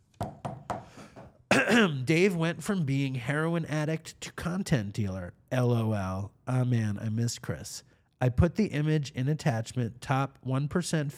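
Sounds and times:
vape knocks: 0.2s - 1.4s
speech: 1.6s - 11.1s.

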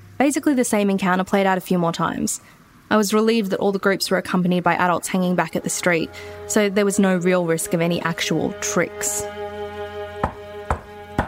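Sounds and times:
speech: 0.2s - 9.4s
knocking on a door: 10.2s - 11.2s.

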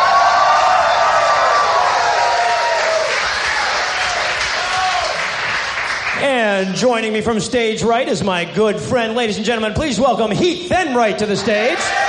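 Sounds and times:
crowd voices cheering: 0.0s - 5.8s, 11.3s - 12.0s
live audience applause at the People's Improv Theater in New York: 0.0s - 6.5s
speech: 6.6s - 12.0s.

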